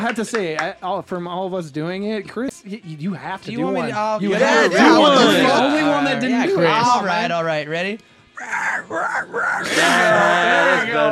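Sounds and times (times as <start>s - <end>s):
speech: 0.0s - 11.1s
person imitating a squealing pig: 8.4s - 11.1s.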